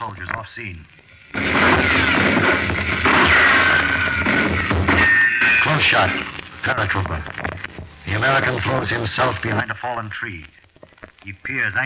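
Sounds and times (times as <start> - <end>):
speech: 0.0 - 3.3, 5.7 - 7.4, 8.1 - 10.6, 11.2 - 11.8
battle gunfire with rifle shots: 1.3 - 6.4
rumbling booms: 1.4 - 5.0.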